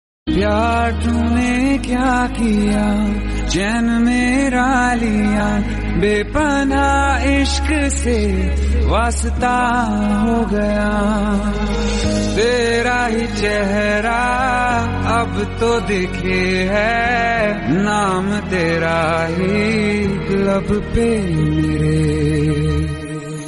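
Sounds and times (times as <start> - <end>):
Hindi sad music: 0.3 - 23.4.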